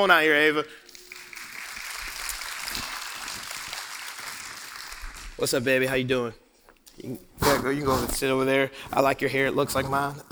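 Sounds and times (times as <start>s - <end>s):
speech: 0.0s - 0.9s, 5.4s - 6.4s, 7.0s - 10.2s
audience applause: 0.8s - 5.4s.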